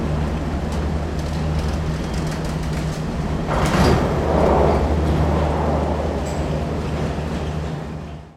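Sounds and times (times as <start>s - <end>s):
cable cars leaving station at Luchon Superbagneres in France: 0.0s - 8.3s.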